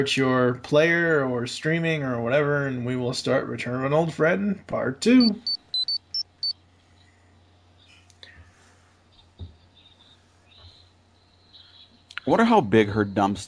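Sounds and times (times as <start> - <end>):
speech: 0.0 - 5.5, 12.3 - 13.4
low steady hum: 0.0 - 13.4
chime high electronic beeps: 5.2 - 6.6.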